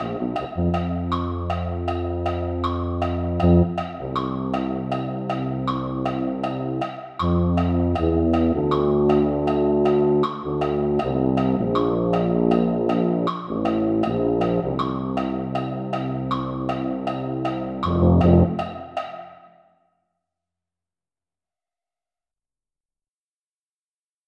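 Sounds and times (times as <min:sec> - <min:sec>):
tuba: 0:00.0 - 0:19.0.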